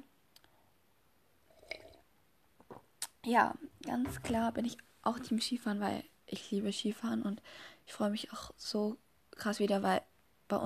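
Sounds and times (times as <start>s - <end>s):
person sipping and swallowing a drink: 1.5s - 2.1s
speech: 3.2s - 10.6s.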